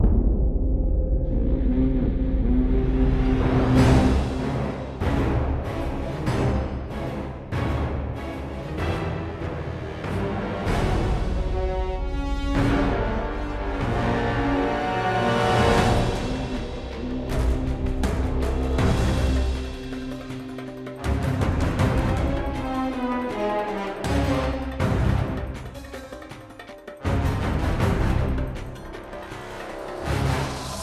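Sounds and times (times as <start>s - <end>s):
cinematic combat music: 0.0s - 30.8s.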